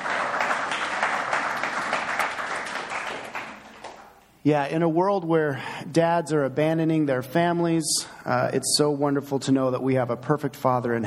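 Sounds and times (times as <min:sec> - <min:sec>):
round of applause: 0:00.0 - 0:04.2
speech: 0:04.4 - 0:11.0.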